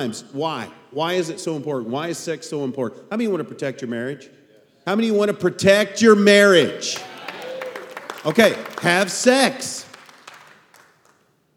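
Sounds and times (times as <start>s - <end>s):
speech: 0.0s - 7.1s, 8.2s - 9.9s
audience clapping: 6.9s - 11.2s.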